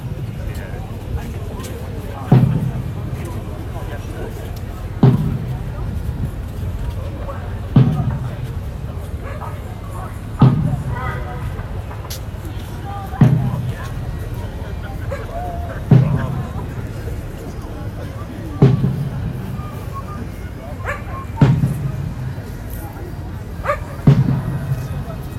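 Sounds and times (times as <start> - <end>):
faint murmuring voices: 0.0 - 25.3
single bass drum played at an Edinburgh climate protest: 2.3 - 3.2, 4.8 - 6.9, 7.6 - 8.5, 10.4 - 11.0, 13.2 - 13.8, 15.8 - 16.8, 21.4 - 22.3, 24.0 - 24.8.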